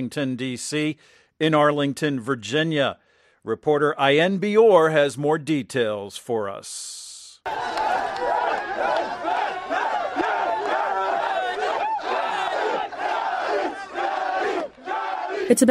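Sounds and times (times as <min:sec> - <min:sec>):
speech: 0:00.0 - 0:09.3, 0:15.5 - 0:15.6
crowd gathered after soccer tournament: 0:07.4 - 0:15.6.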